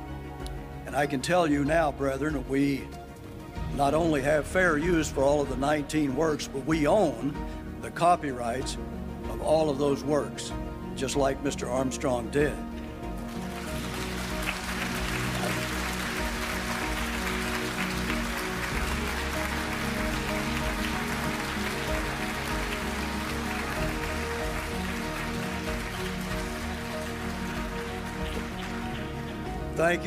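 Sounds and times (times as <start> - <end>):
speech: 0.9 - 3.0, 3.7 - 12.7, 29.8 - 30.0
audience applause: 13.3 - 30.0.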